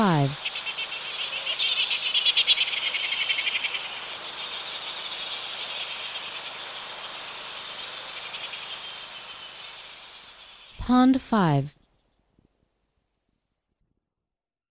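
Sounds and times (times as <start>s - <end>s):
speech: 0.0s - 0.6s, 10.9s - 11.8s
Cook's petrel chattering calls: 0.2s - 10.7s.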